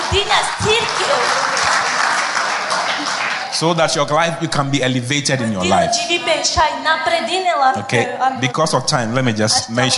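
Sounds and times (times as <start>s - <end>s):
audience applauding: 0.0s - 4.0s
speech: 0.1s - 1.7s, 3.0s - 9.9s.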